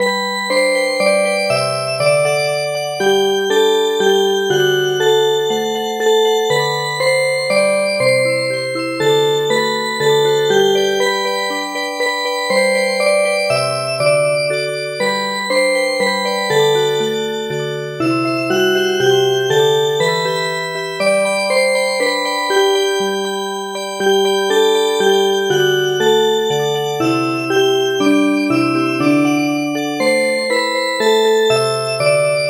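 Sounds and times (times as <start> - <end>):
music box: 0.0 - 32.4.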